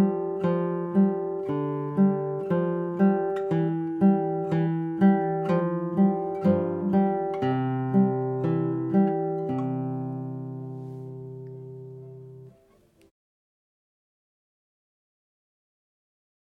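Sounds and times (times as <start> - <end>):
guitar playing: 0.0 - 13.1.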